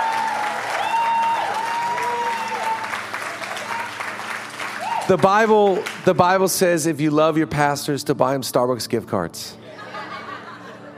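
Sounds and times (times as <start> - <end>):
audience applause: 0.0 - 6.2
speech: 5.1 - 9.6
laughter: 9.6 - 10.9.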